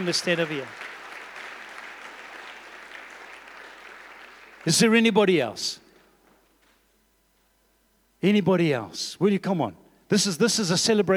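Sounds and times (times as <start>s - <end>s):
speech: 0.0s - 0.8s, 4.6s - 5.8s, 8.2s - 11.1s
audience applause: 0.0s - 4.8s.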